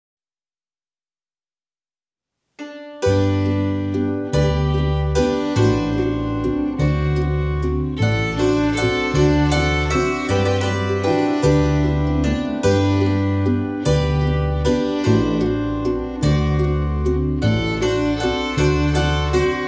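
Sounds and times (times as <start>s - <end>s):
waltz music from Salzburg: 2.6s - 19.6s.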